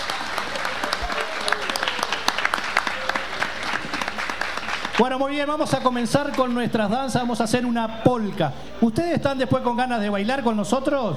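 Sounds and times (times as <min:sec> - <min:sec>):
crowd applauding: 0:00.0 - 0:06.6
speech: 0:05.0 - 0:11.1.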